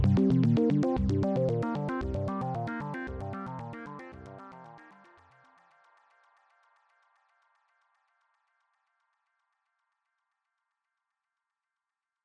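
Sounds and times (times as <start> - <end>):
arpeggiated Oberheim OB 8 synthesizer: 0.0 - 4.8.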